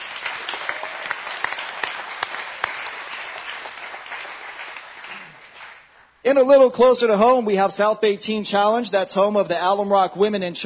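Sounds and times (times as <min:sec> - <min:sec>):
audience applause: 0:00.0 - 0:05.9
speech: 0:06.2 - 0:10.6.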